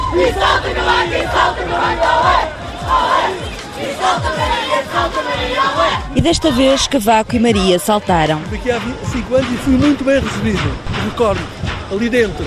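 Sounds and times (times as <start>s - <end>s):
large crowd of students shouting, chanting and cheering: 0.0s - 9.3s
speech: 0.2s - 3.1s, 4.0s - 12.4s.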